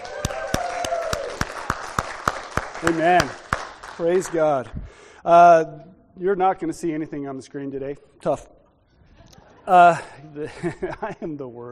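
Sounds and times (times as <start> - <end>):
congregation hand claps in praise: 0.0 - 4.7
speech: 2.8 - 3.4, 4.0 - 8.6, 9.6 - 11.6
laughter: 9.3 - 11.4.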